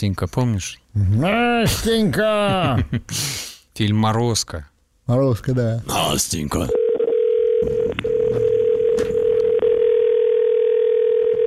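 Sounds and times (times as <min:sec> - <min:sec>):
speech: 0:00.0 - 0:06.8
American long telephone ringing tone: 0:06.7 - 0:11.4.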